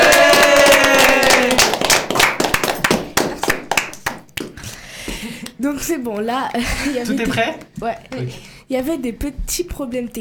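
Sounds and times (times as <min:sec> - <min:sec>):
group of people clapping: 0:00.0 - 0:05.6
speech: 0:05.6 - 0:10.1.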